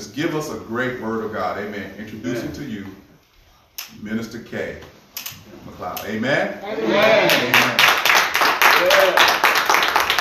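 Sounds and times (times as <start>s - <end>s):
speech: 0.2s - 3.0s, 3.9s - 7.8s, 8.8s - 9.4s
audience clapping: 7.2s - 10.1s.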